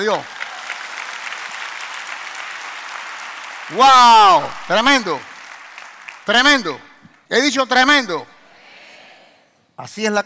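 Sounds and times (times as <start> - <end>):
speech: 0.0 - 0.4, 3.7 - 5.3, 6.3 - 8.3, 9.8 - 10.2
audience applause: 0.0 - 7.0.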